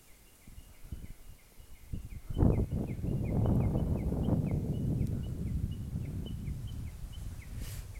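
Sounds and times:
Japanese bush warbler singing outdoors: 0.0 - 7.9
rumble of wind or passing traffic: 2.0 - 7.9.

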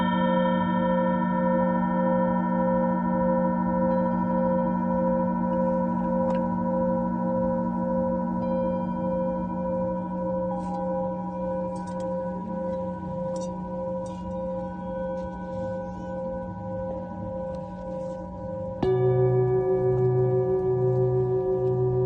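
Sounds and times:
singing bowl ringing: 0.0 - 22.0.

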